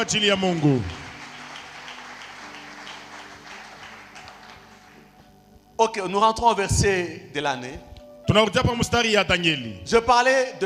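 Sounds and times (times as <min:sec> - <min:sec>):
speech: 0:00.0 - 0:01.0, 0:05.8 - 0:10.6
church congregation applauding in praise of the Lord: 0:00.0 - 0:05.4.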